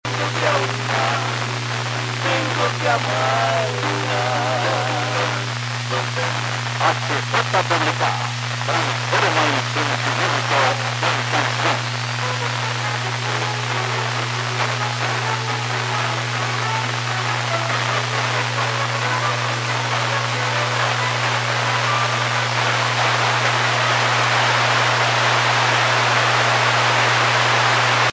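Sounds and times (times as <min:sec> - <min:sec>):
non-US military satellite music: 0:00.0 - 0:28.1.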